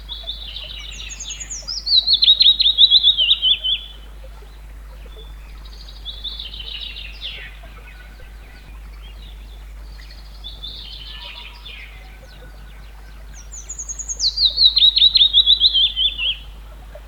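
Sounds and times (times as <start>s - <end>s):
willow warbler singing a falling series of whistled notes: 0.0s - 17.0s.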